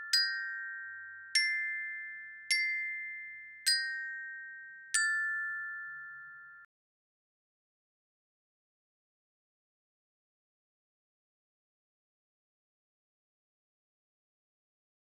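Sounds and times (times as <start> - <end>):
glockenspiel: 0.0 - 6.7.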